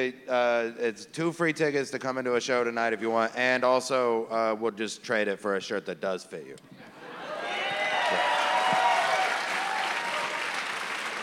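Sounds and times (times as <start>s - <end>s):
speech: 0.0s - 6.8s
comedy club audience applauding and cheering: 7.2s - 11.2s.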